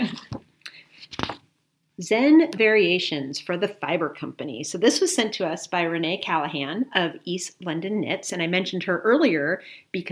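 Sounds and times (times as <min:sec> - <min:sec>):
rustling paper pages being flipped: 0:01.0 - 0:01.4
speech: 0:02.0 - 0:10.1.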